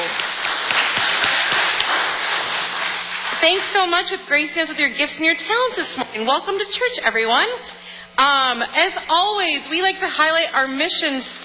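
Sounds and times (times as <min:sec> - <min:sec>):
applause: 0:00.0 - 0:03.9
speech: 0:03.4 - 0:11.4.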